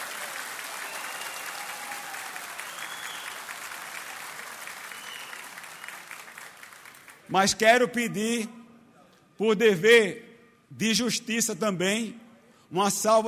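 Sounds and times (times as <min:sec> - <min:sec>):
audience applause: 0:00.0 - 0:07.3
speech: 0:07.3 - 0:08.6, 0:09.4 - 0:13.2.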